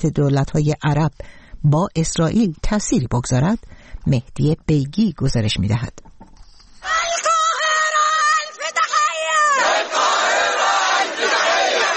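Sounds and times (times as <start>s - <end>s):
speech: 0.0s - 7.0s
crowd shouting in support of Palestinians at a protest in Cairo: 6.8s - 11.9s.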